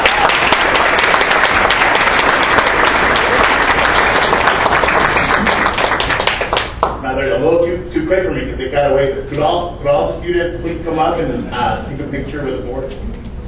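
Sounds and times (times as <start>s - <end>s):
crowd applauding: 0.0s - 7.0s
speech: 7.4s - 13.2s.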